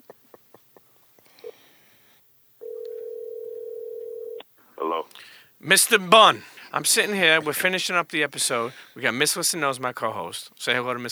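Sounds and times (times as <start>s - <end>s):
telephone dial tone: 2.6s - 4.4s
speech: 4.8s - 11.1s.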